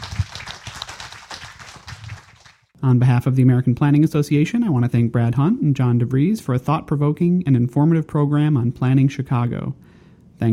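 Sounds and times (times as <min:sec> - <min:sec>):
audience applause: 0:00.0 - 0:02.7
speech: 0:02.8 - 0:10.5.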